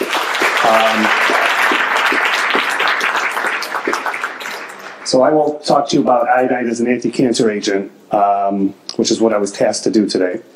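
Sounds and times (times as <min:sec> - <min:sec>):
audience applause: 0:00.0 - 0:05.5
speech: 0:00.7 - 0:01.5, 0:05.1 - 0:10.5.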